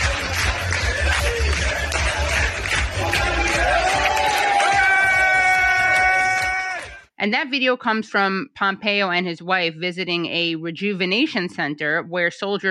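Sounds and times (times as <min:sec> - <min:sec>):
crowd clapping along to dancing: 0:00.0 - 0:07.1
speech: 0:07.2 - 0:12.6.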